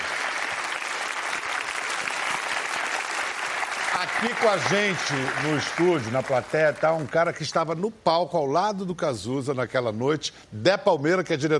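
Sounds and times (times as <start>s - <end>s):
studio audience applause: 0.0s - 7.4s
speech: 4.0s - 11.5s.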